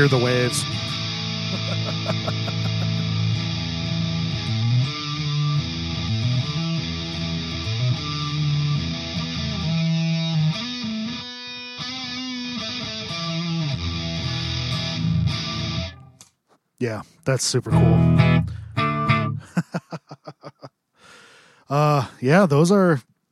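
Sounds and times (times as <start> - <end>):
speech: 0.0 - 2.6, 16.8 - 18.5, 21.7 - 23.1
electric guitar through distortion pedal chugging low chords: 0.0 - 16.2, 17.6 - 19.5
laughter: 1.4 - 3.2, 19.4 - 20.7.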